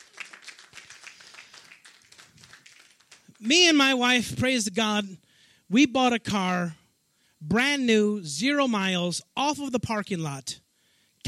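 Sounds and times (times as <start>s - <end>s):
audience clapping hands: 0.0s - 3.5s
speech: 3.4s - 6.8s, 7.4s - 10.6s.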